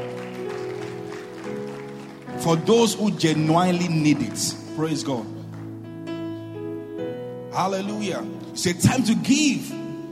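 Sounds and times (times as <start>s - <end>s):
audience clapping: 0.0s - 6.2s
speech: 2.4s - 5.4s, 7.6s - 9.8s.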